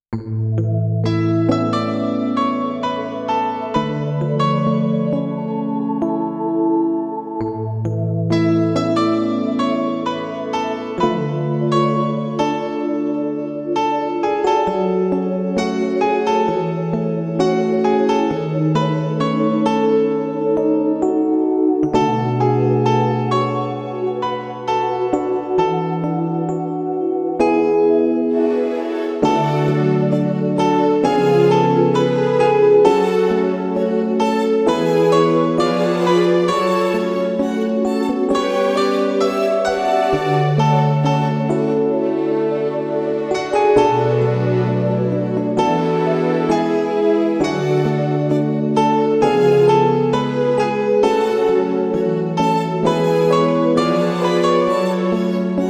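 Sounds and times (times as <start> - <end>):
instrumental music: 0.1 - 55.6.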